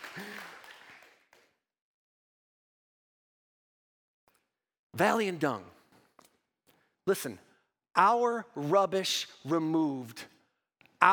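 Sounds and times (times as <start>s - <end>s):
soft golf clap applause from an audience: 0.0s - 1.6s
speech: 5.0s - 5.7s, 7.1s - 10.3s.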